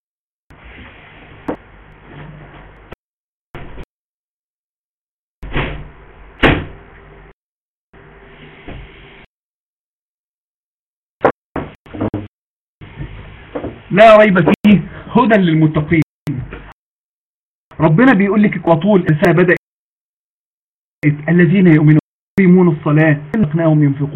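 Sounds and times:
balcony door closing: 0:05.4 - 0:06.8
speech: 0:13.9 - 0:16.0, 0:17.8 - 0:19.6, 0:21.0 - 0:24.1.

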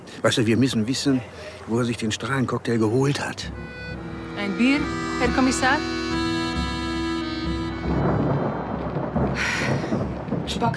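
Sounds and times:
rain: 0:00.0 - 0:10.7
speech: 0:00.2 - 0:03.9, 0:04.5 - 0:06.0
storm: 0:03.9 - 0:10.7.

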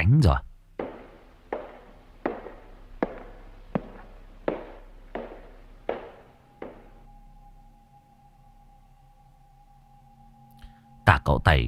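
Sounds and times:
speech: 0:00.1 - 0:00.5, 0:11.3 - 0:11.6
low hum: 0:00.5 - 0:11.1
wooden clog footsteps knocking on floor: 0:00.7 - 0:07.3.

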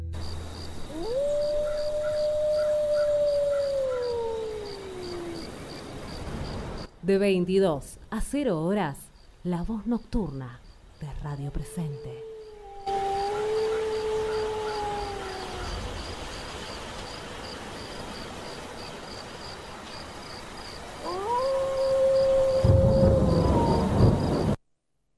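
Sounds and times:
insects chirring: 0:00.1 - 0:06.9, 0:08.3 - 0:24.6
wolves howling: 0:00.8 - 0:05.7, 0:11.5 - 0:16.2, 0:21.0 - 0:24.3
speech: 0:07.1 - 0:12.3.

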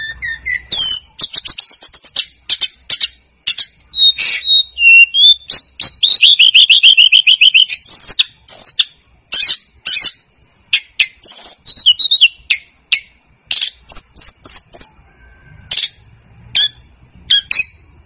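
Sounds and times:
snowy-browed flycatcher singing: 0:00.0 - 0:18.0.

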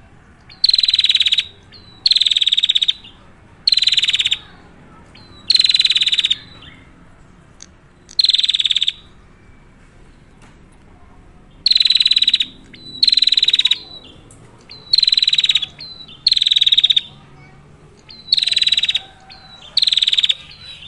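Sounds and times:
prinia buzzy high-pitched rattling calls: 0:00.5 - 0:04.6, 0:05.2 - 0:06.4, 0:08.1 - 0:09.0, 0:11.6 - 0:17.3, 0:18.0 - 0:20.8.

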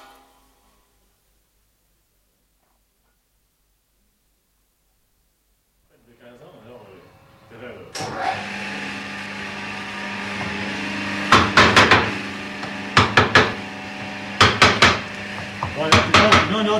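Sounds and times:
hammer striking a hand tool: 0:11.3 - 0:16.7.

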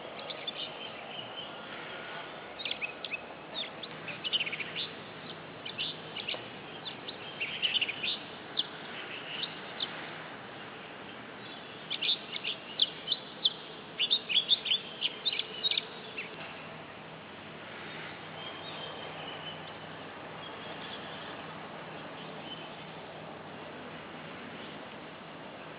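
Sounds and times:
Oriental magpie-robin singing: 0:00.0 - 0:10.0, 0:11.4 - 0:16.6, 0:17.8 - 0:23.0.

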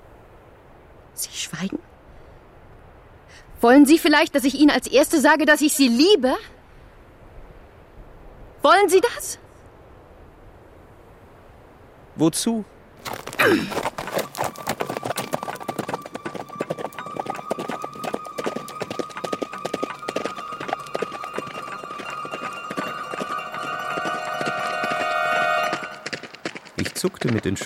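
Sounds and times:
speech: 0:01.2 - 0:01.9, 0:03.6 - 0:06.6, 0:08.6 - 0:09.4, 0:12.2 - 0:14.0, 0:27.0 - 0:27.6
horse hooves galloping on road: 0:13.0 - 0:27.6.

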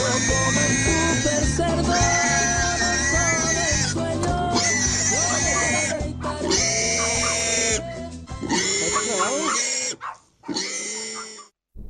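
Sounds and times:
pigs squealing: 0:00.0 - 0:11.6.

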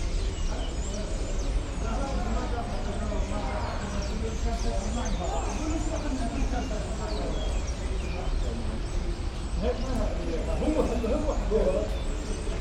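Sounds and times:
hundreds of common starlings chattering on a crane: 0:00.0 - 0:12.5.

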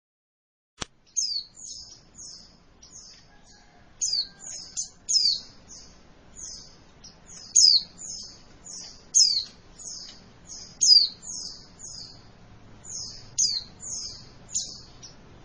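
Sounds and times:
female white-eye chirping in high thin down-slurred notes: 0:01.1 - 0:15.4.

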